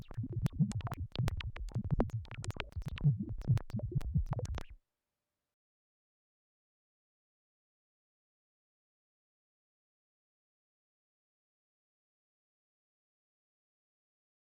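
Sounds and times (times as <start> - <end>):
crackly analogue synth effect: 0.0 - 4.8.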